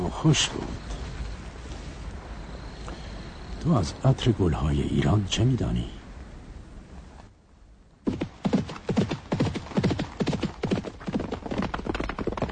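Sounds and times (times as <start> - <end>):
speech: 0.1 - 0.8, 3.6 - 6.0
hoofbeats of a horse led by the reins: 8.1 - 12.5.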